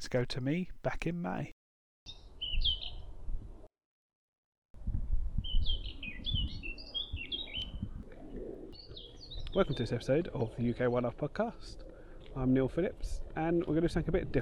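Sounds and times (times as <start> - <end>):
speech: 0.1 - 1.6, 9.5 - 11.8, 12.4 - 14.3
wild birds singing in nature park: 2.1 - 3.0, 5.4 - 7.8, 8.8 - 9.9.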